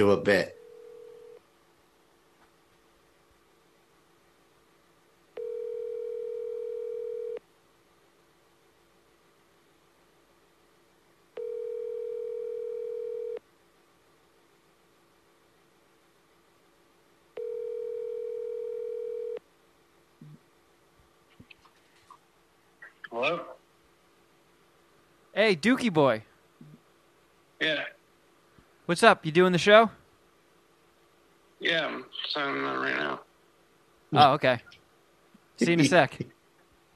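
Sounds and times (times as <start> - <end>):
speech: 0.0 - 0.6, 25.4 - 26.3, 28.9 - 30.0, 31.6 - 33.3, 34.1 - 34.8, 35.6 - 36.4
phone ringback tones on speakerphone: 0.5 - 1.4, 5.4 - 7.4, 11.4 - 13.4, 17.4 - 19.4
rustling: 21.2 - 22.2.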